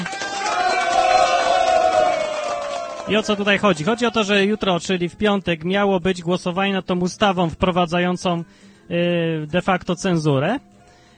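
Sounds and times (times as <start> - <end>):
crowd of listeners cheering and clapping: 0.0 - 4.6
speech: 3.1 - 10.7.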